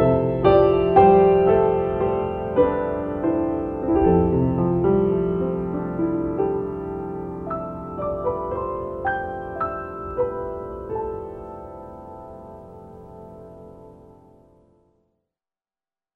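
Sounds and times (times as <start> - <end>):
piano music: 0.0 - 14.9.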